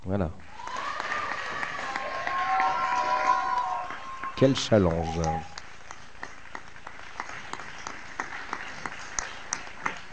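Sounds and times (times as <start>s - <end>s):
cheering voices: 0.5s - 5.6s
audience applause: 0.5s - 10.1s
speech: 4.4s - 5.5s.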